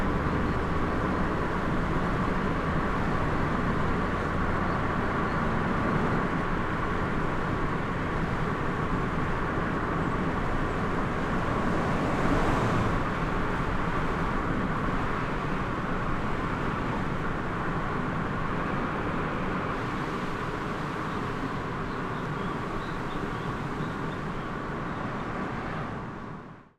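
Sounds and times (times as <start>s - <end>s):
FIAT car driving on the road: 0.0s - 26.7s.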